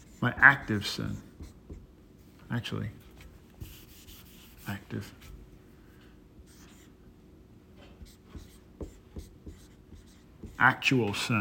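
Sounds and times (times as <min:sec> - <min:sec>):
writing on a board during a Bible study class: 0:00.0 - 0:01.9, 0:03.6 - 0:05.4, 0:06.4 - 0:06.9, 0:07.8 - 0:11.2
speech: 0:00.2 - 0:01.3, 0:02.5 - 0:03.0, 0:04.7 - 0:05.3, 0:10.6 - 0:11.3.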